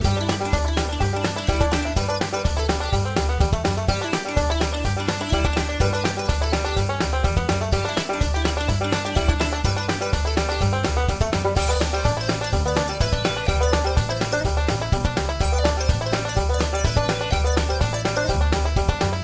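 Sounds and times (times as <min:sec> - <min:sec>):
music: 0:00.0 - 0:19.2.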